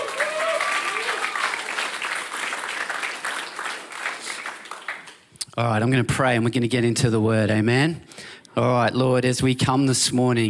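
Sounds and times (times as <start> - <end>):
audience applause: 0.0 - 5.2
speech: 5.6 - 10.4.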